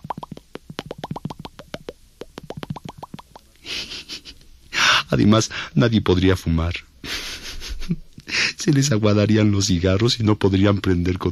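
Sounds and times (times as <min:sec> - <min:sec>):
voice imitating bubbles popping underwater with mouth clicks: 0:00.0 - 0:03.6
speech: 0:05.1 - 0:06.9, 0:08.6 - 0:11.2.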